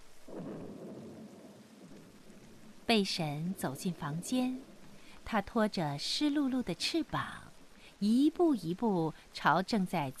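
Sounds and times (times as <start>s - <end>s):
thunder rumbling: 0.0s - 6.6s
wind-blown heavy rain: 0.0s - 9.4s
speech: 2.9s - 4.7s, 5.3s - 10.1s.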